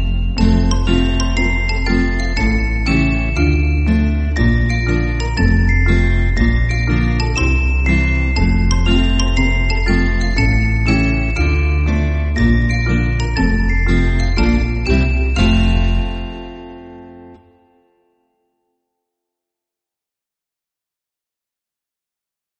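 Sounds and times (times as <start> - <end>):
background music: 0.0 - 17.8.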